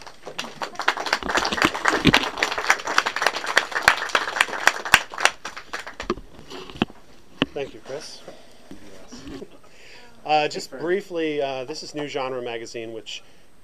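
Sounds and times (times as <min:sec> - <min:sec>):
audience clapping: 0:00.0 - 0:06.4
speech: 0:02.0 - 0:02.3, 0:07.6 - 0:08.5, 0:10.2 - 0:13.4.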